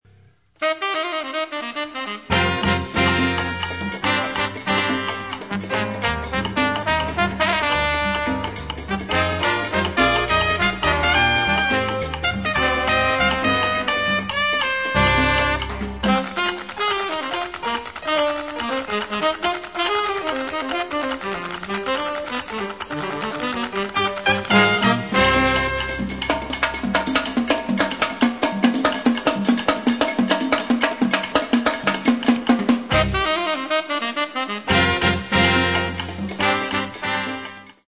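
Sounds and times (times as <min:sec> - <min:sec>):
jazz music: 0:00.6 - 0:37.8.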